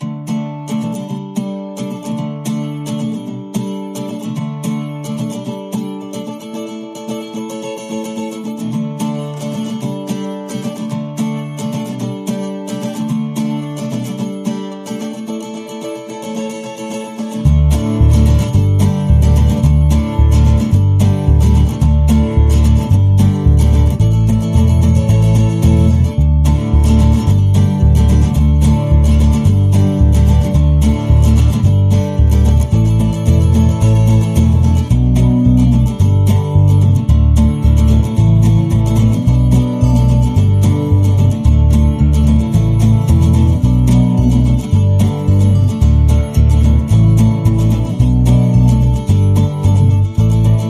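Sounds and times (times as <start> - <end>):
farmhouse indie music: 0.0 - 50.6.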